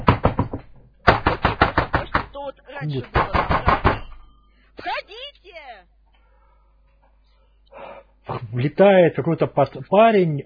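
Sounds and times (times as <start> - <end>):
hurried knocking on a door: 0.0 - 2.3, 3.2 - 4.2
speech: 2.8 - 3.6, 8.5 - 10.4.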